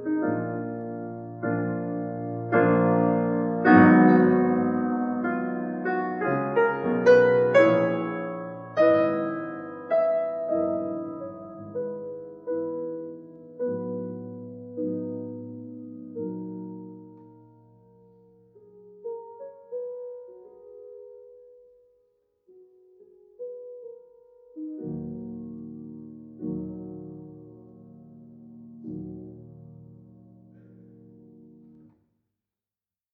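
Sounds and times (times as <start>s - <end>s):
prelude in E-flat minor: 0.0s - 31.9s.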